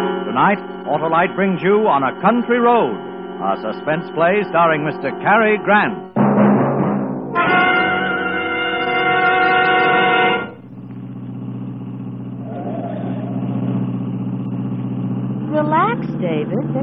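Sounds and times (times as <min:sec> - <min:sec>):
bright harmonic tone: 0:00.0 - 0:06.2, 0:07.3 - 0:10.7
car engine idling: 0:00.0 - 0:06.3, 0:07.2 - 0:16.8
speech: 0:00.4 - 0:06.2.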